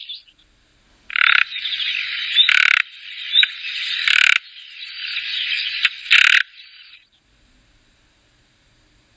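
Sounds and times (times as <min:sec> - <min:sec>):
nightingale singing: 0:00.0 - 0:00.5, 0:01.1 - 0:07.2.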